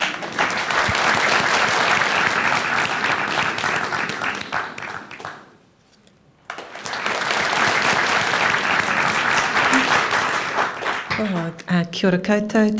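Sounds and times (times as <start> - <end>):
large audience cheering and applauding: 0.0 - 5.5, 6.5 - 11.2
speech: 11.7 - 12.7.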